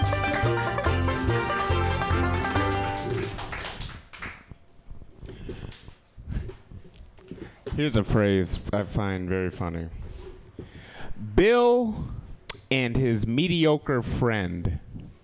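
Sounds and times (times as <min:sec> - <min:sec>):
audience clapping: 0:00.0 - 0:04.6
speech: 0:07.8 - 0:10.0, 0:11.4 - 0:14.8.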